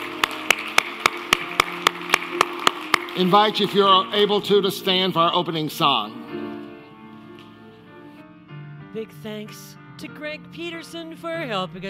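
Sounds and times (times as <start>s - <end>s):
audience applause: 0.0s - 5.1s
speech: 3.2s - 6.2s, 9.0s - 11.8s.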